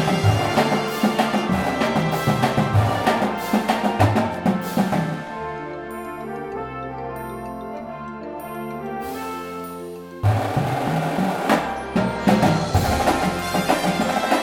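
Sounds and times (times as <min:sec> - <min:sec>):
full drumline: 0:00.0 - 0:05.7, 0:08.9 - 0:14.4
music: 0:00.0 - 0:14.4.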